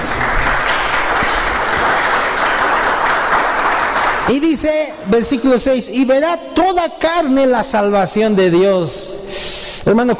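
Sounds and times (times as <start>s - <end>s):
audience applauding: 0.0s - 4.9s
speech: 4.3s - 10.1s.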